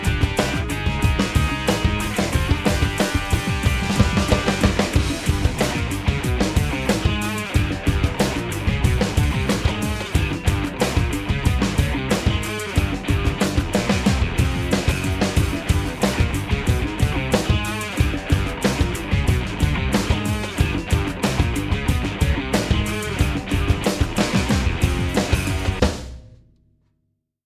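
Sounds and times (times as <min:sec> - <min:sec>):
rock instrumental music: 0:00.0 - 0:26.5.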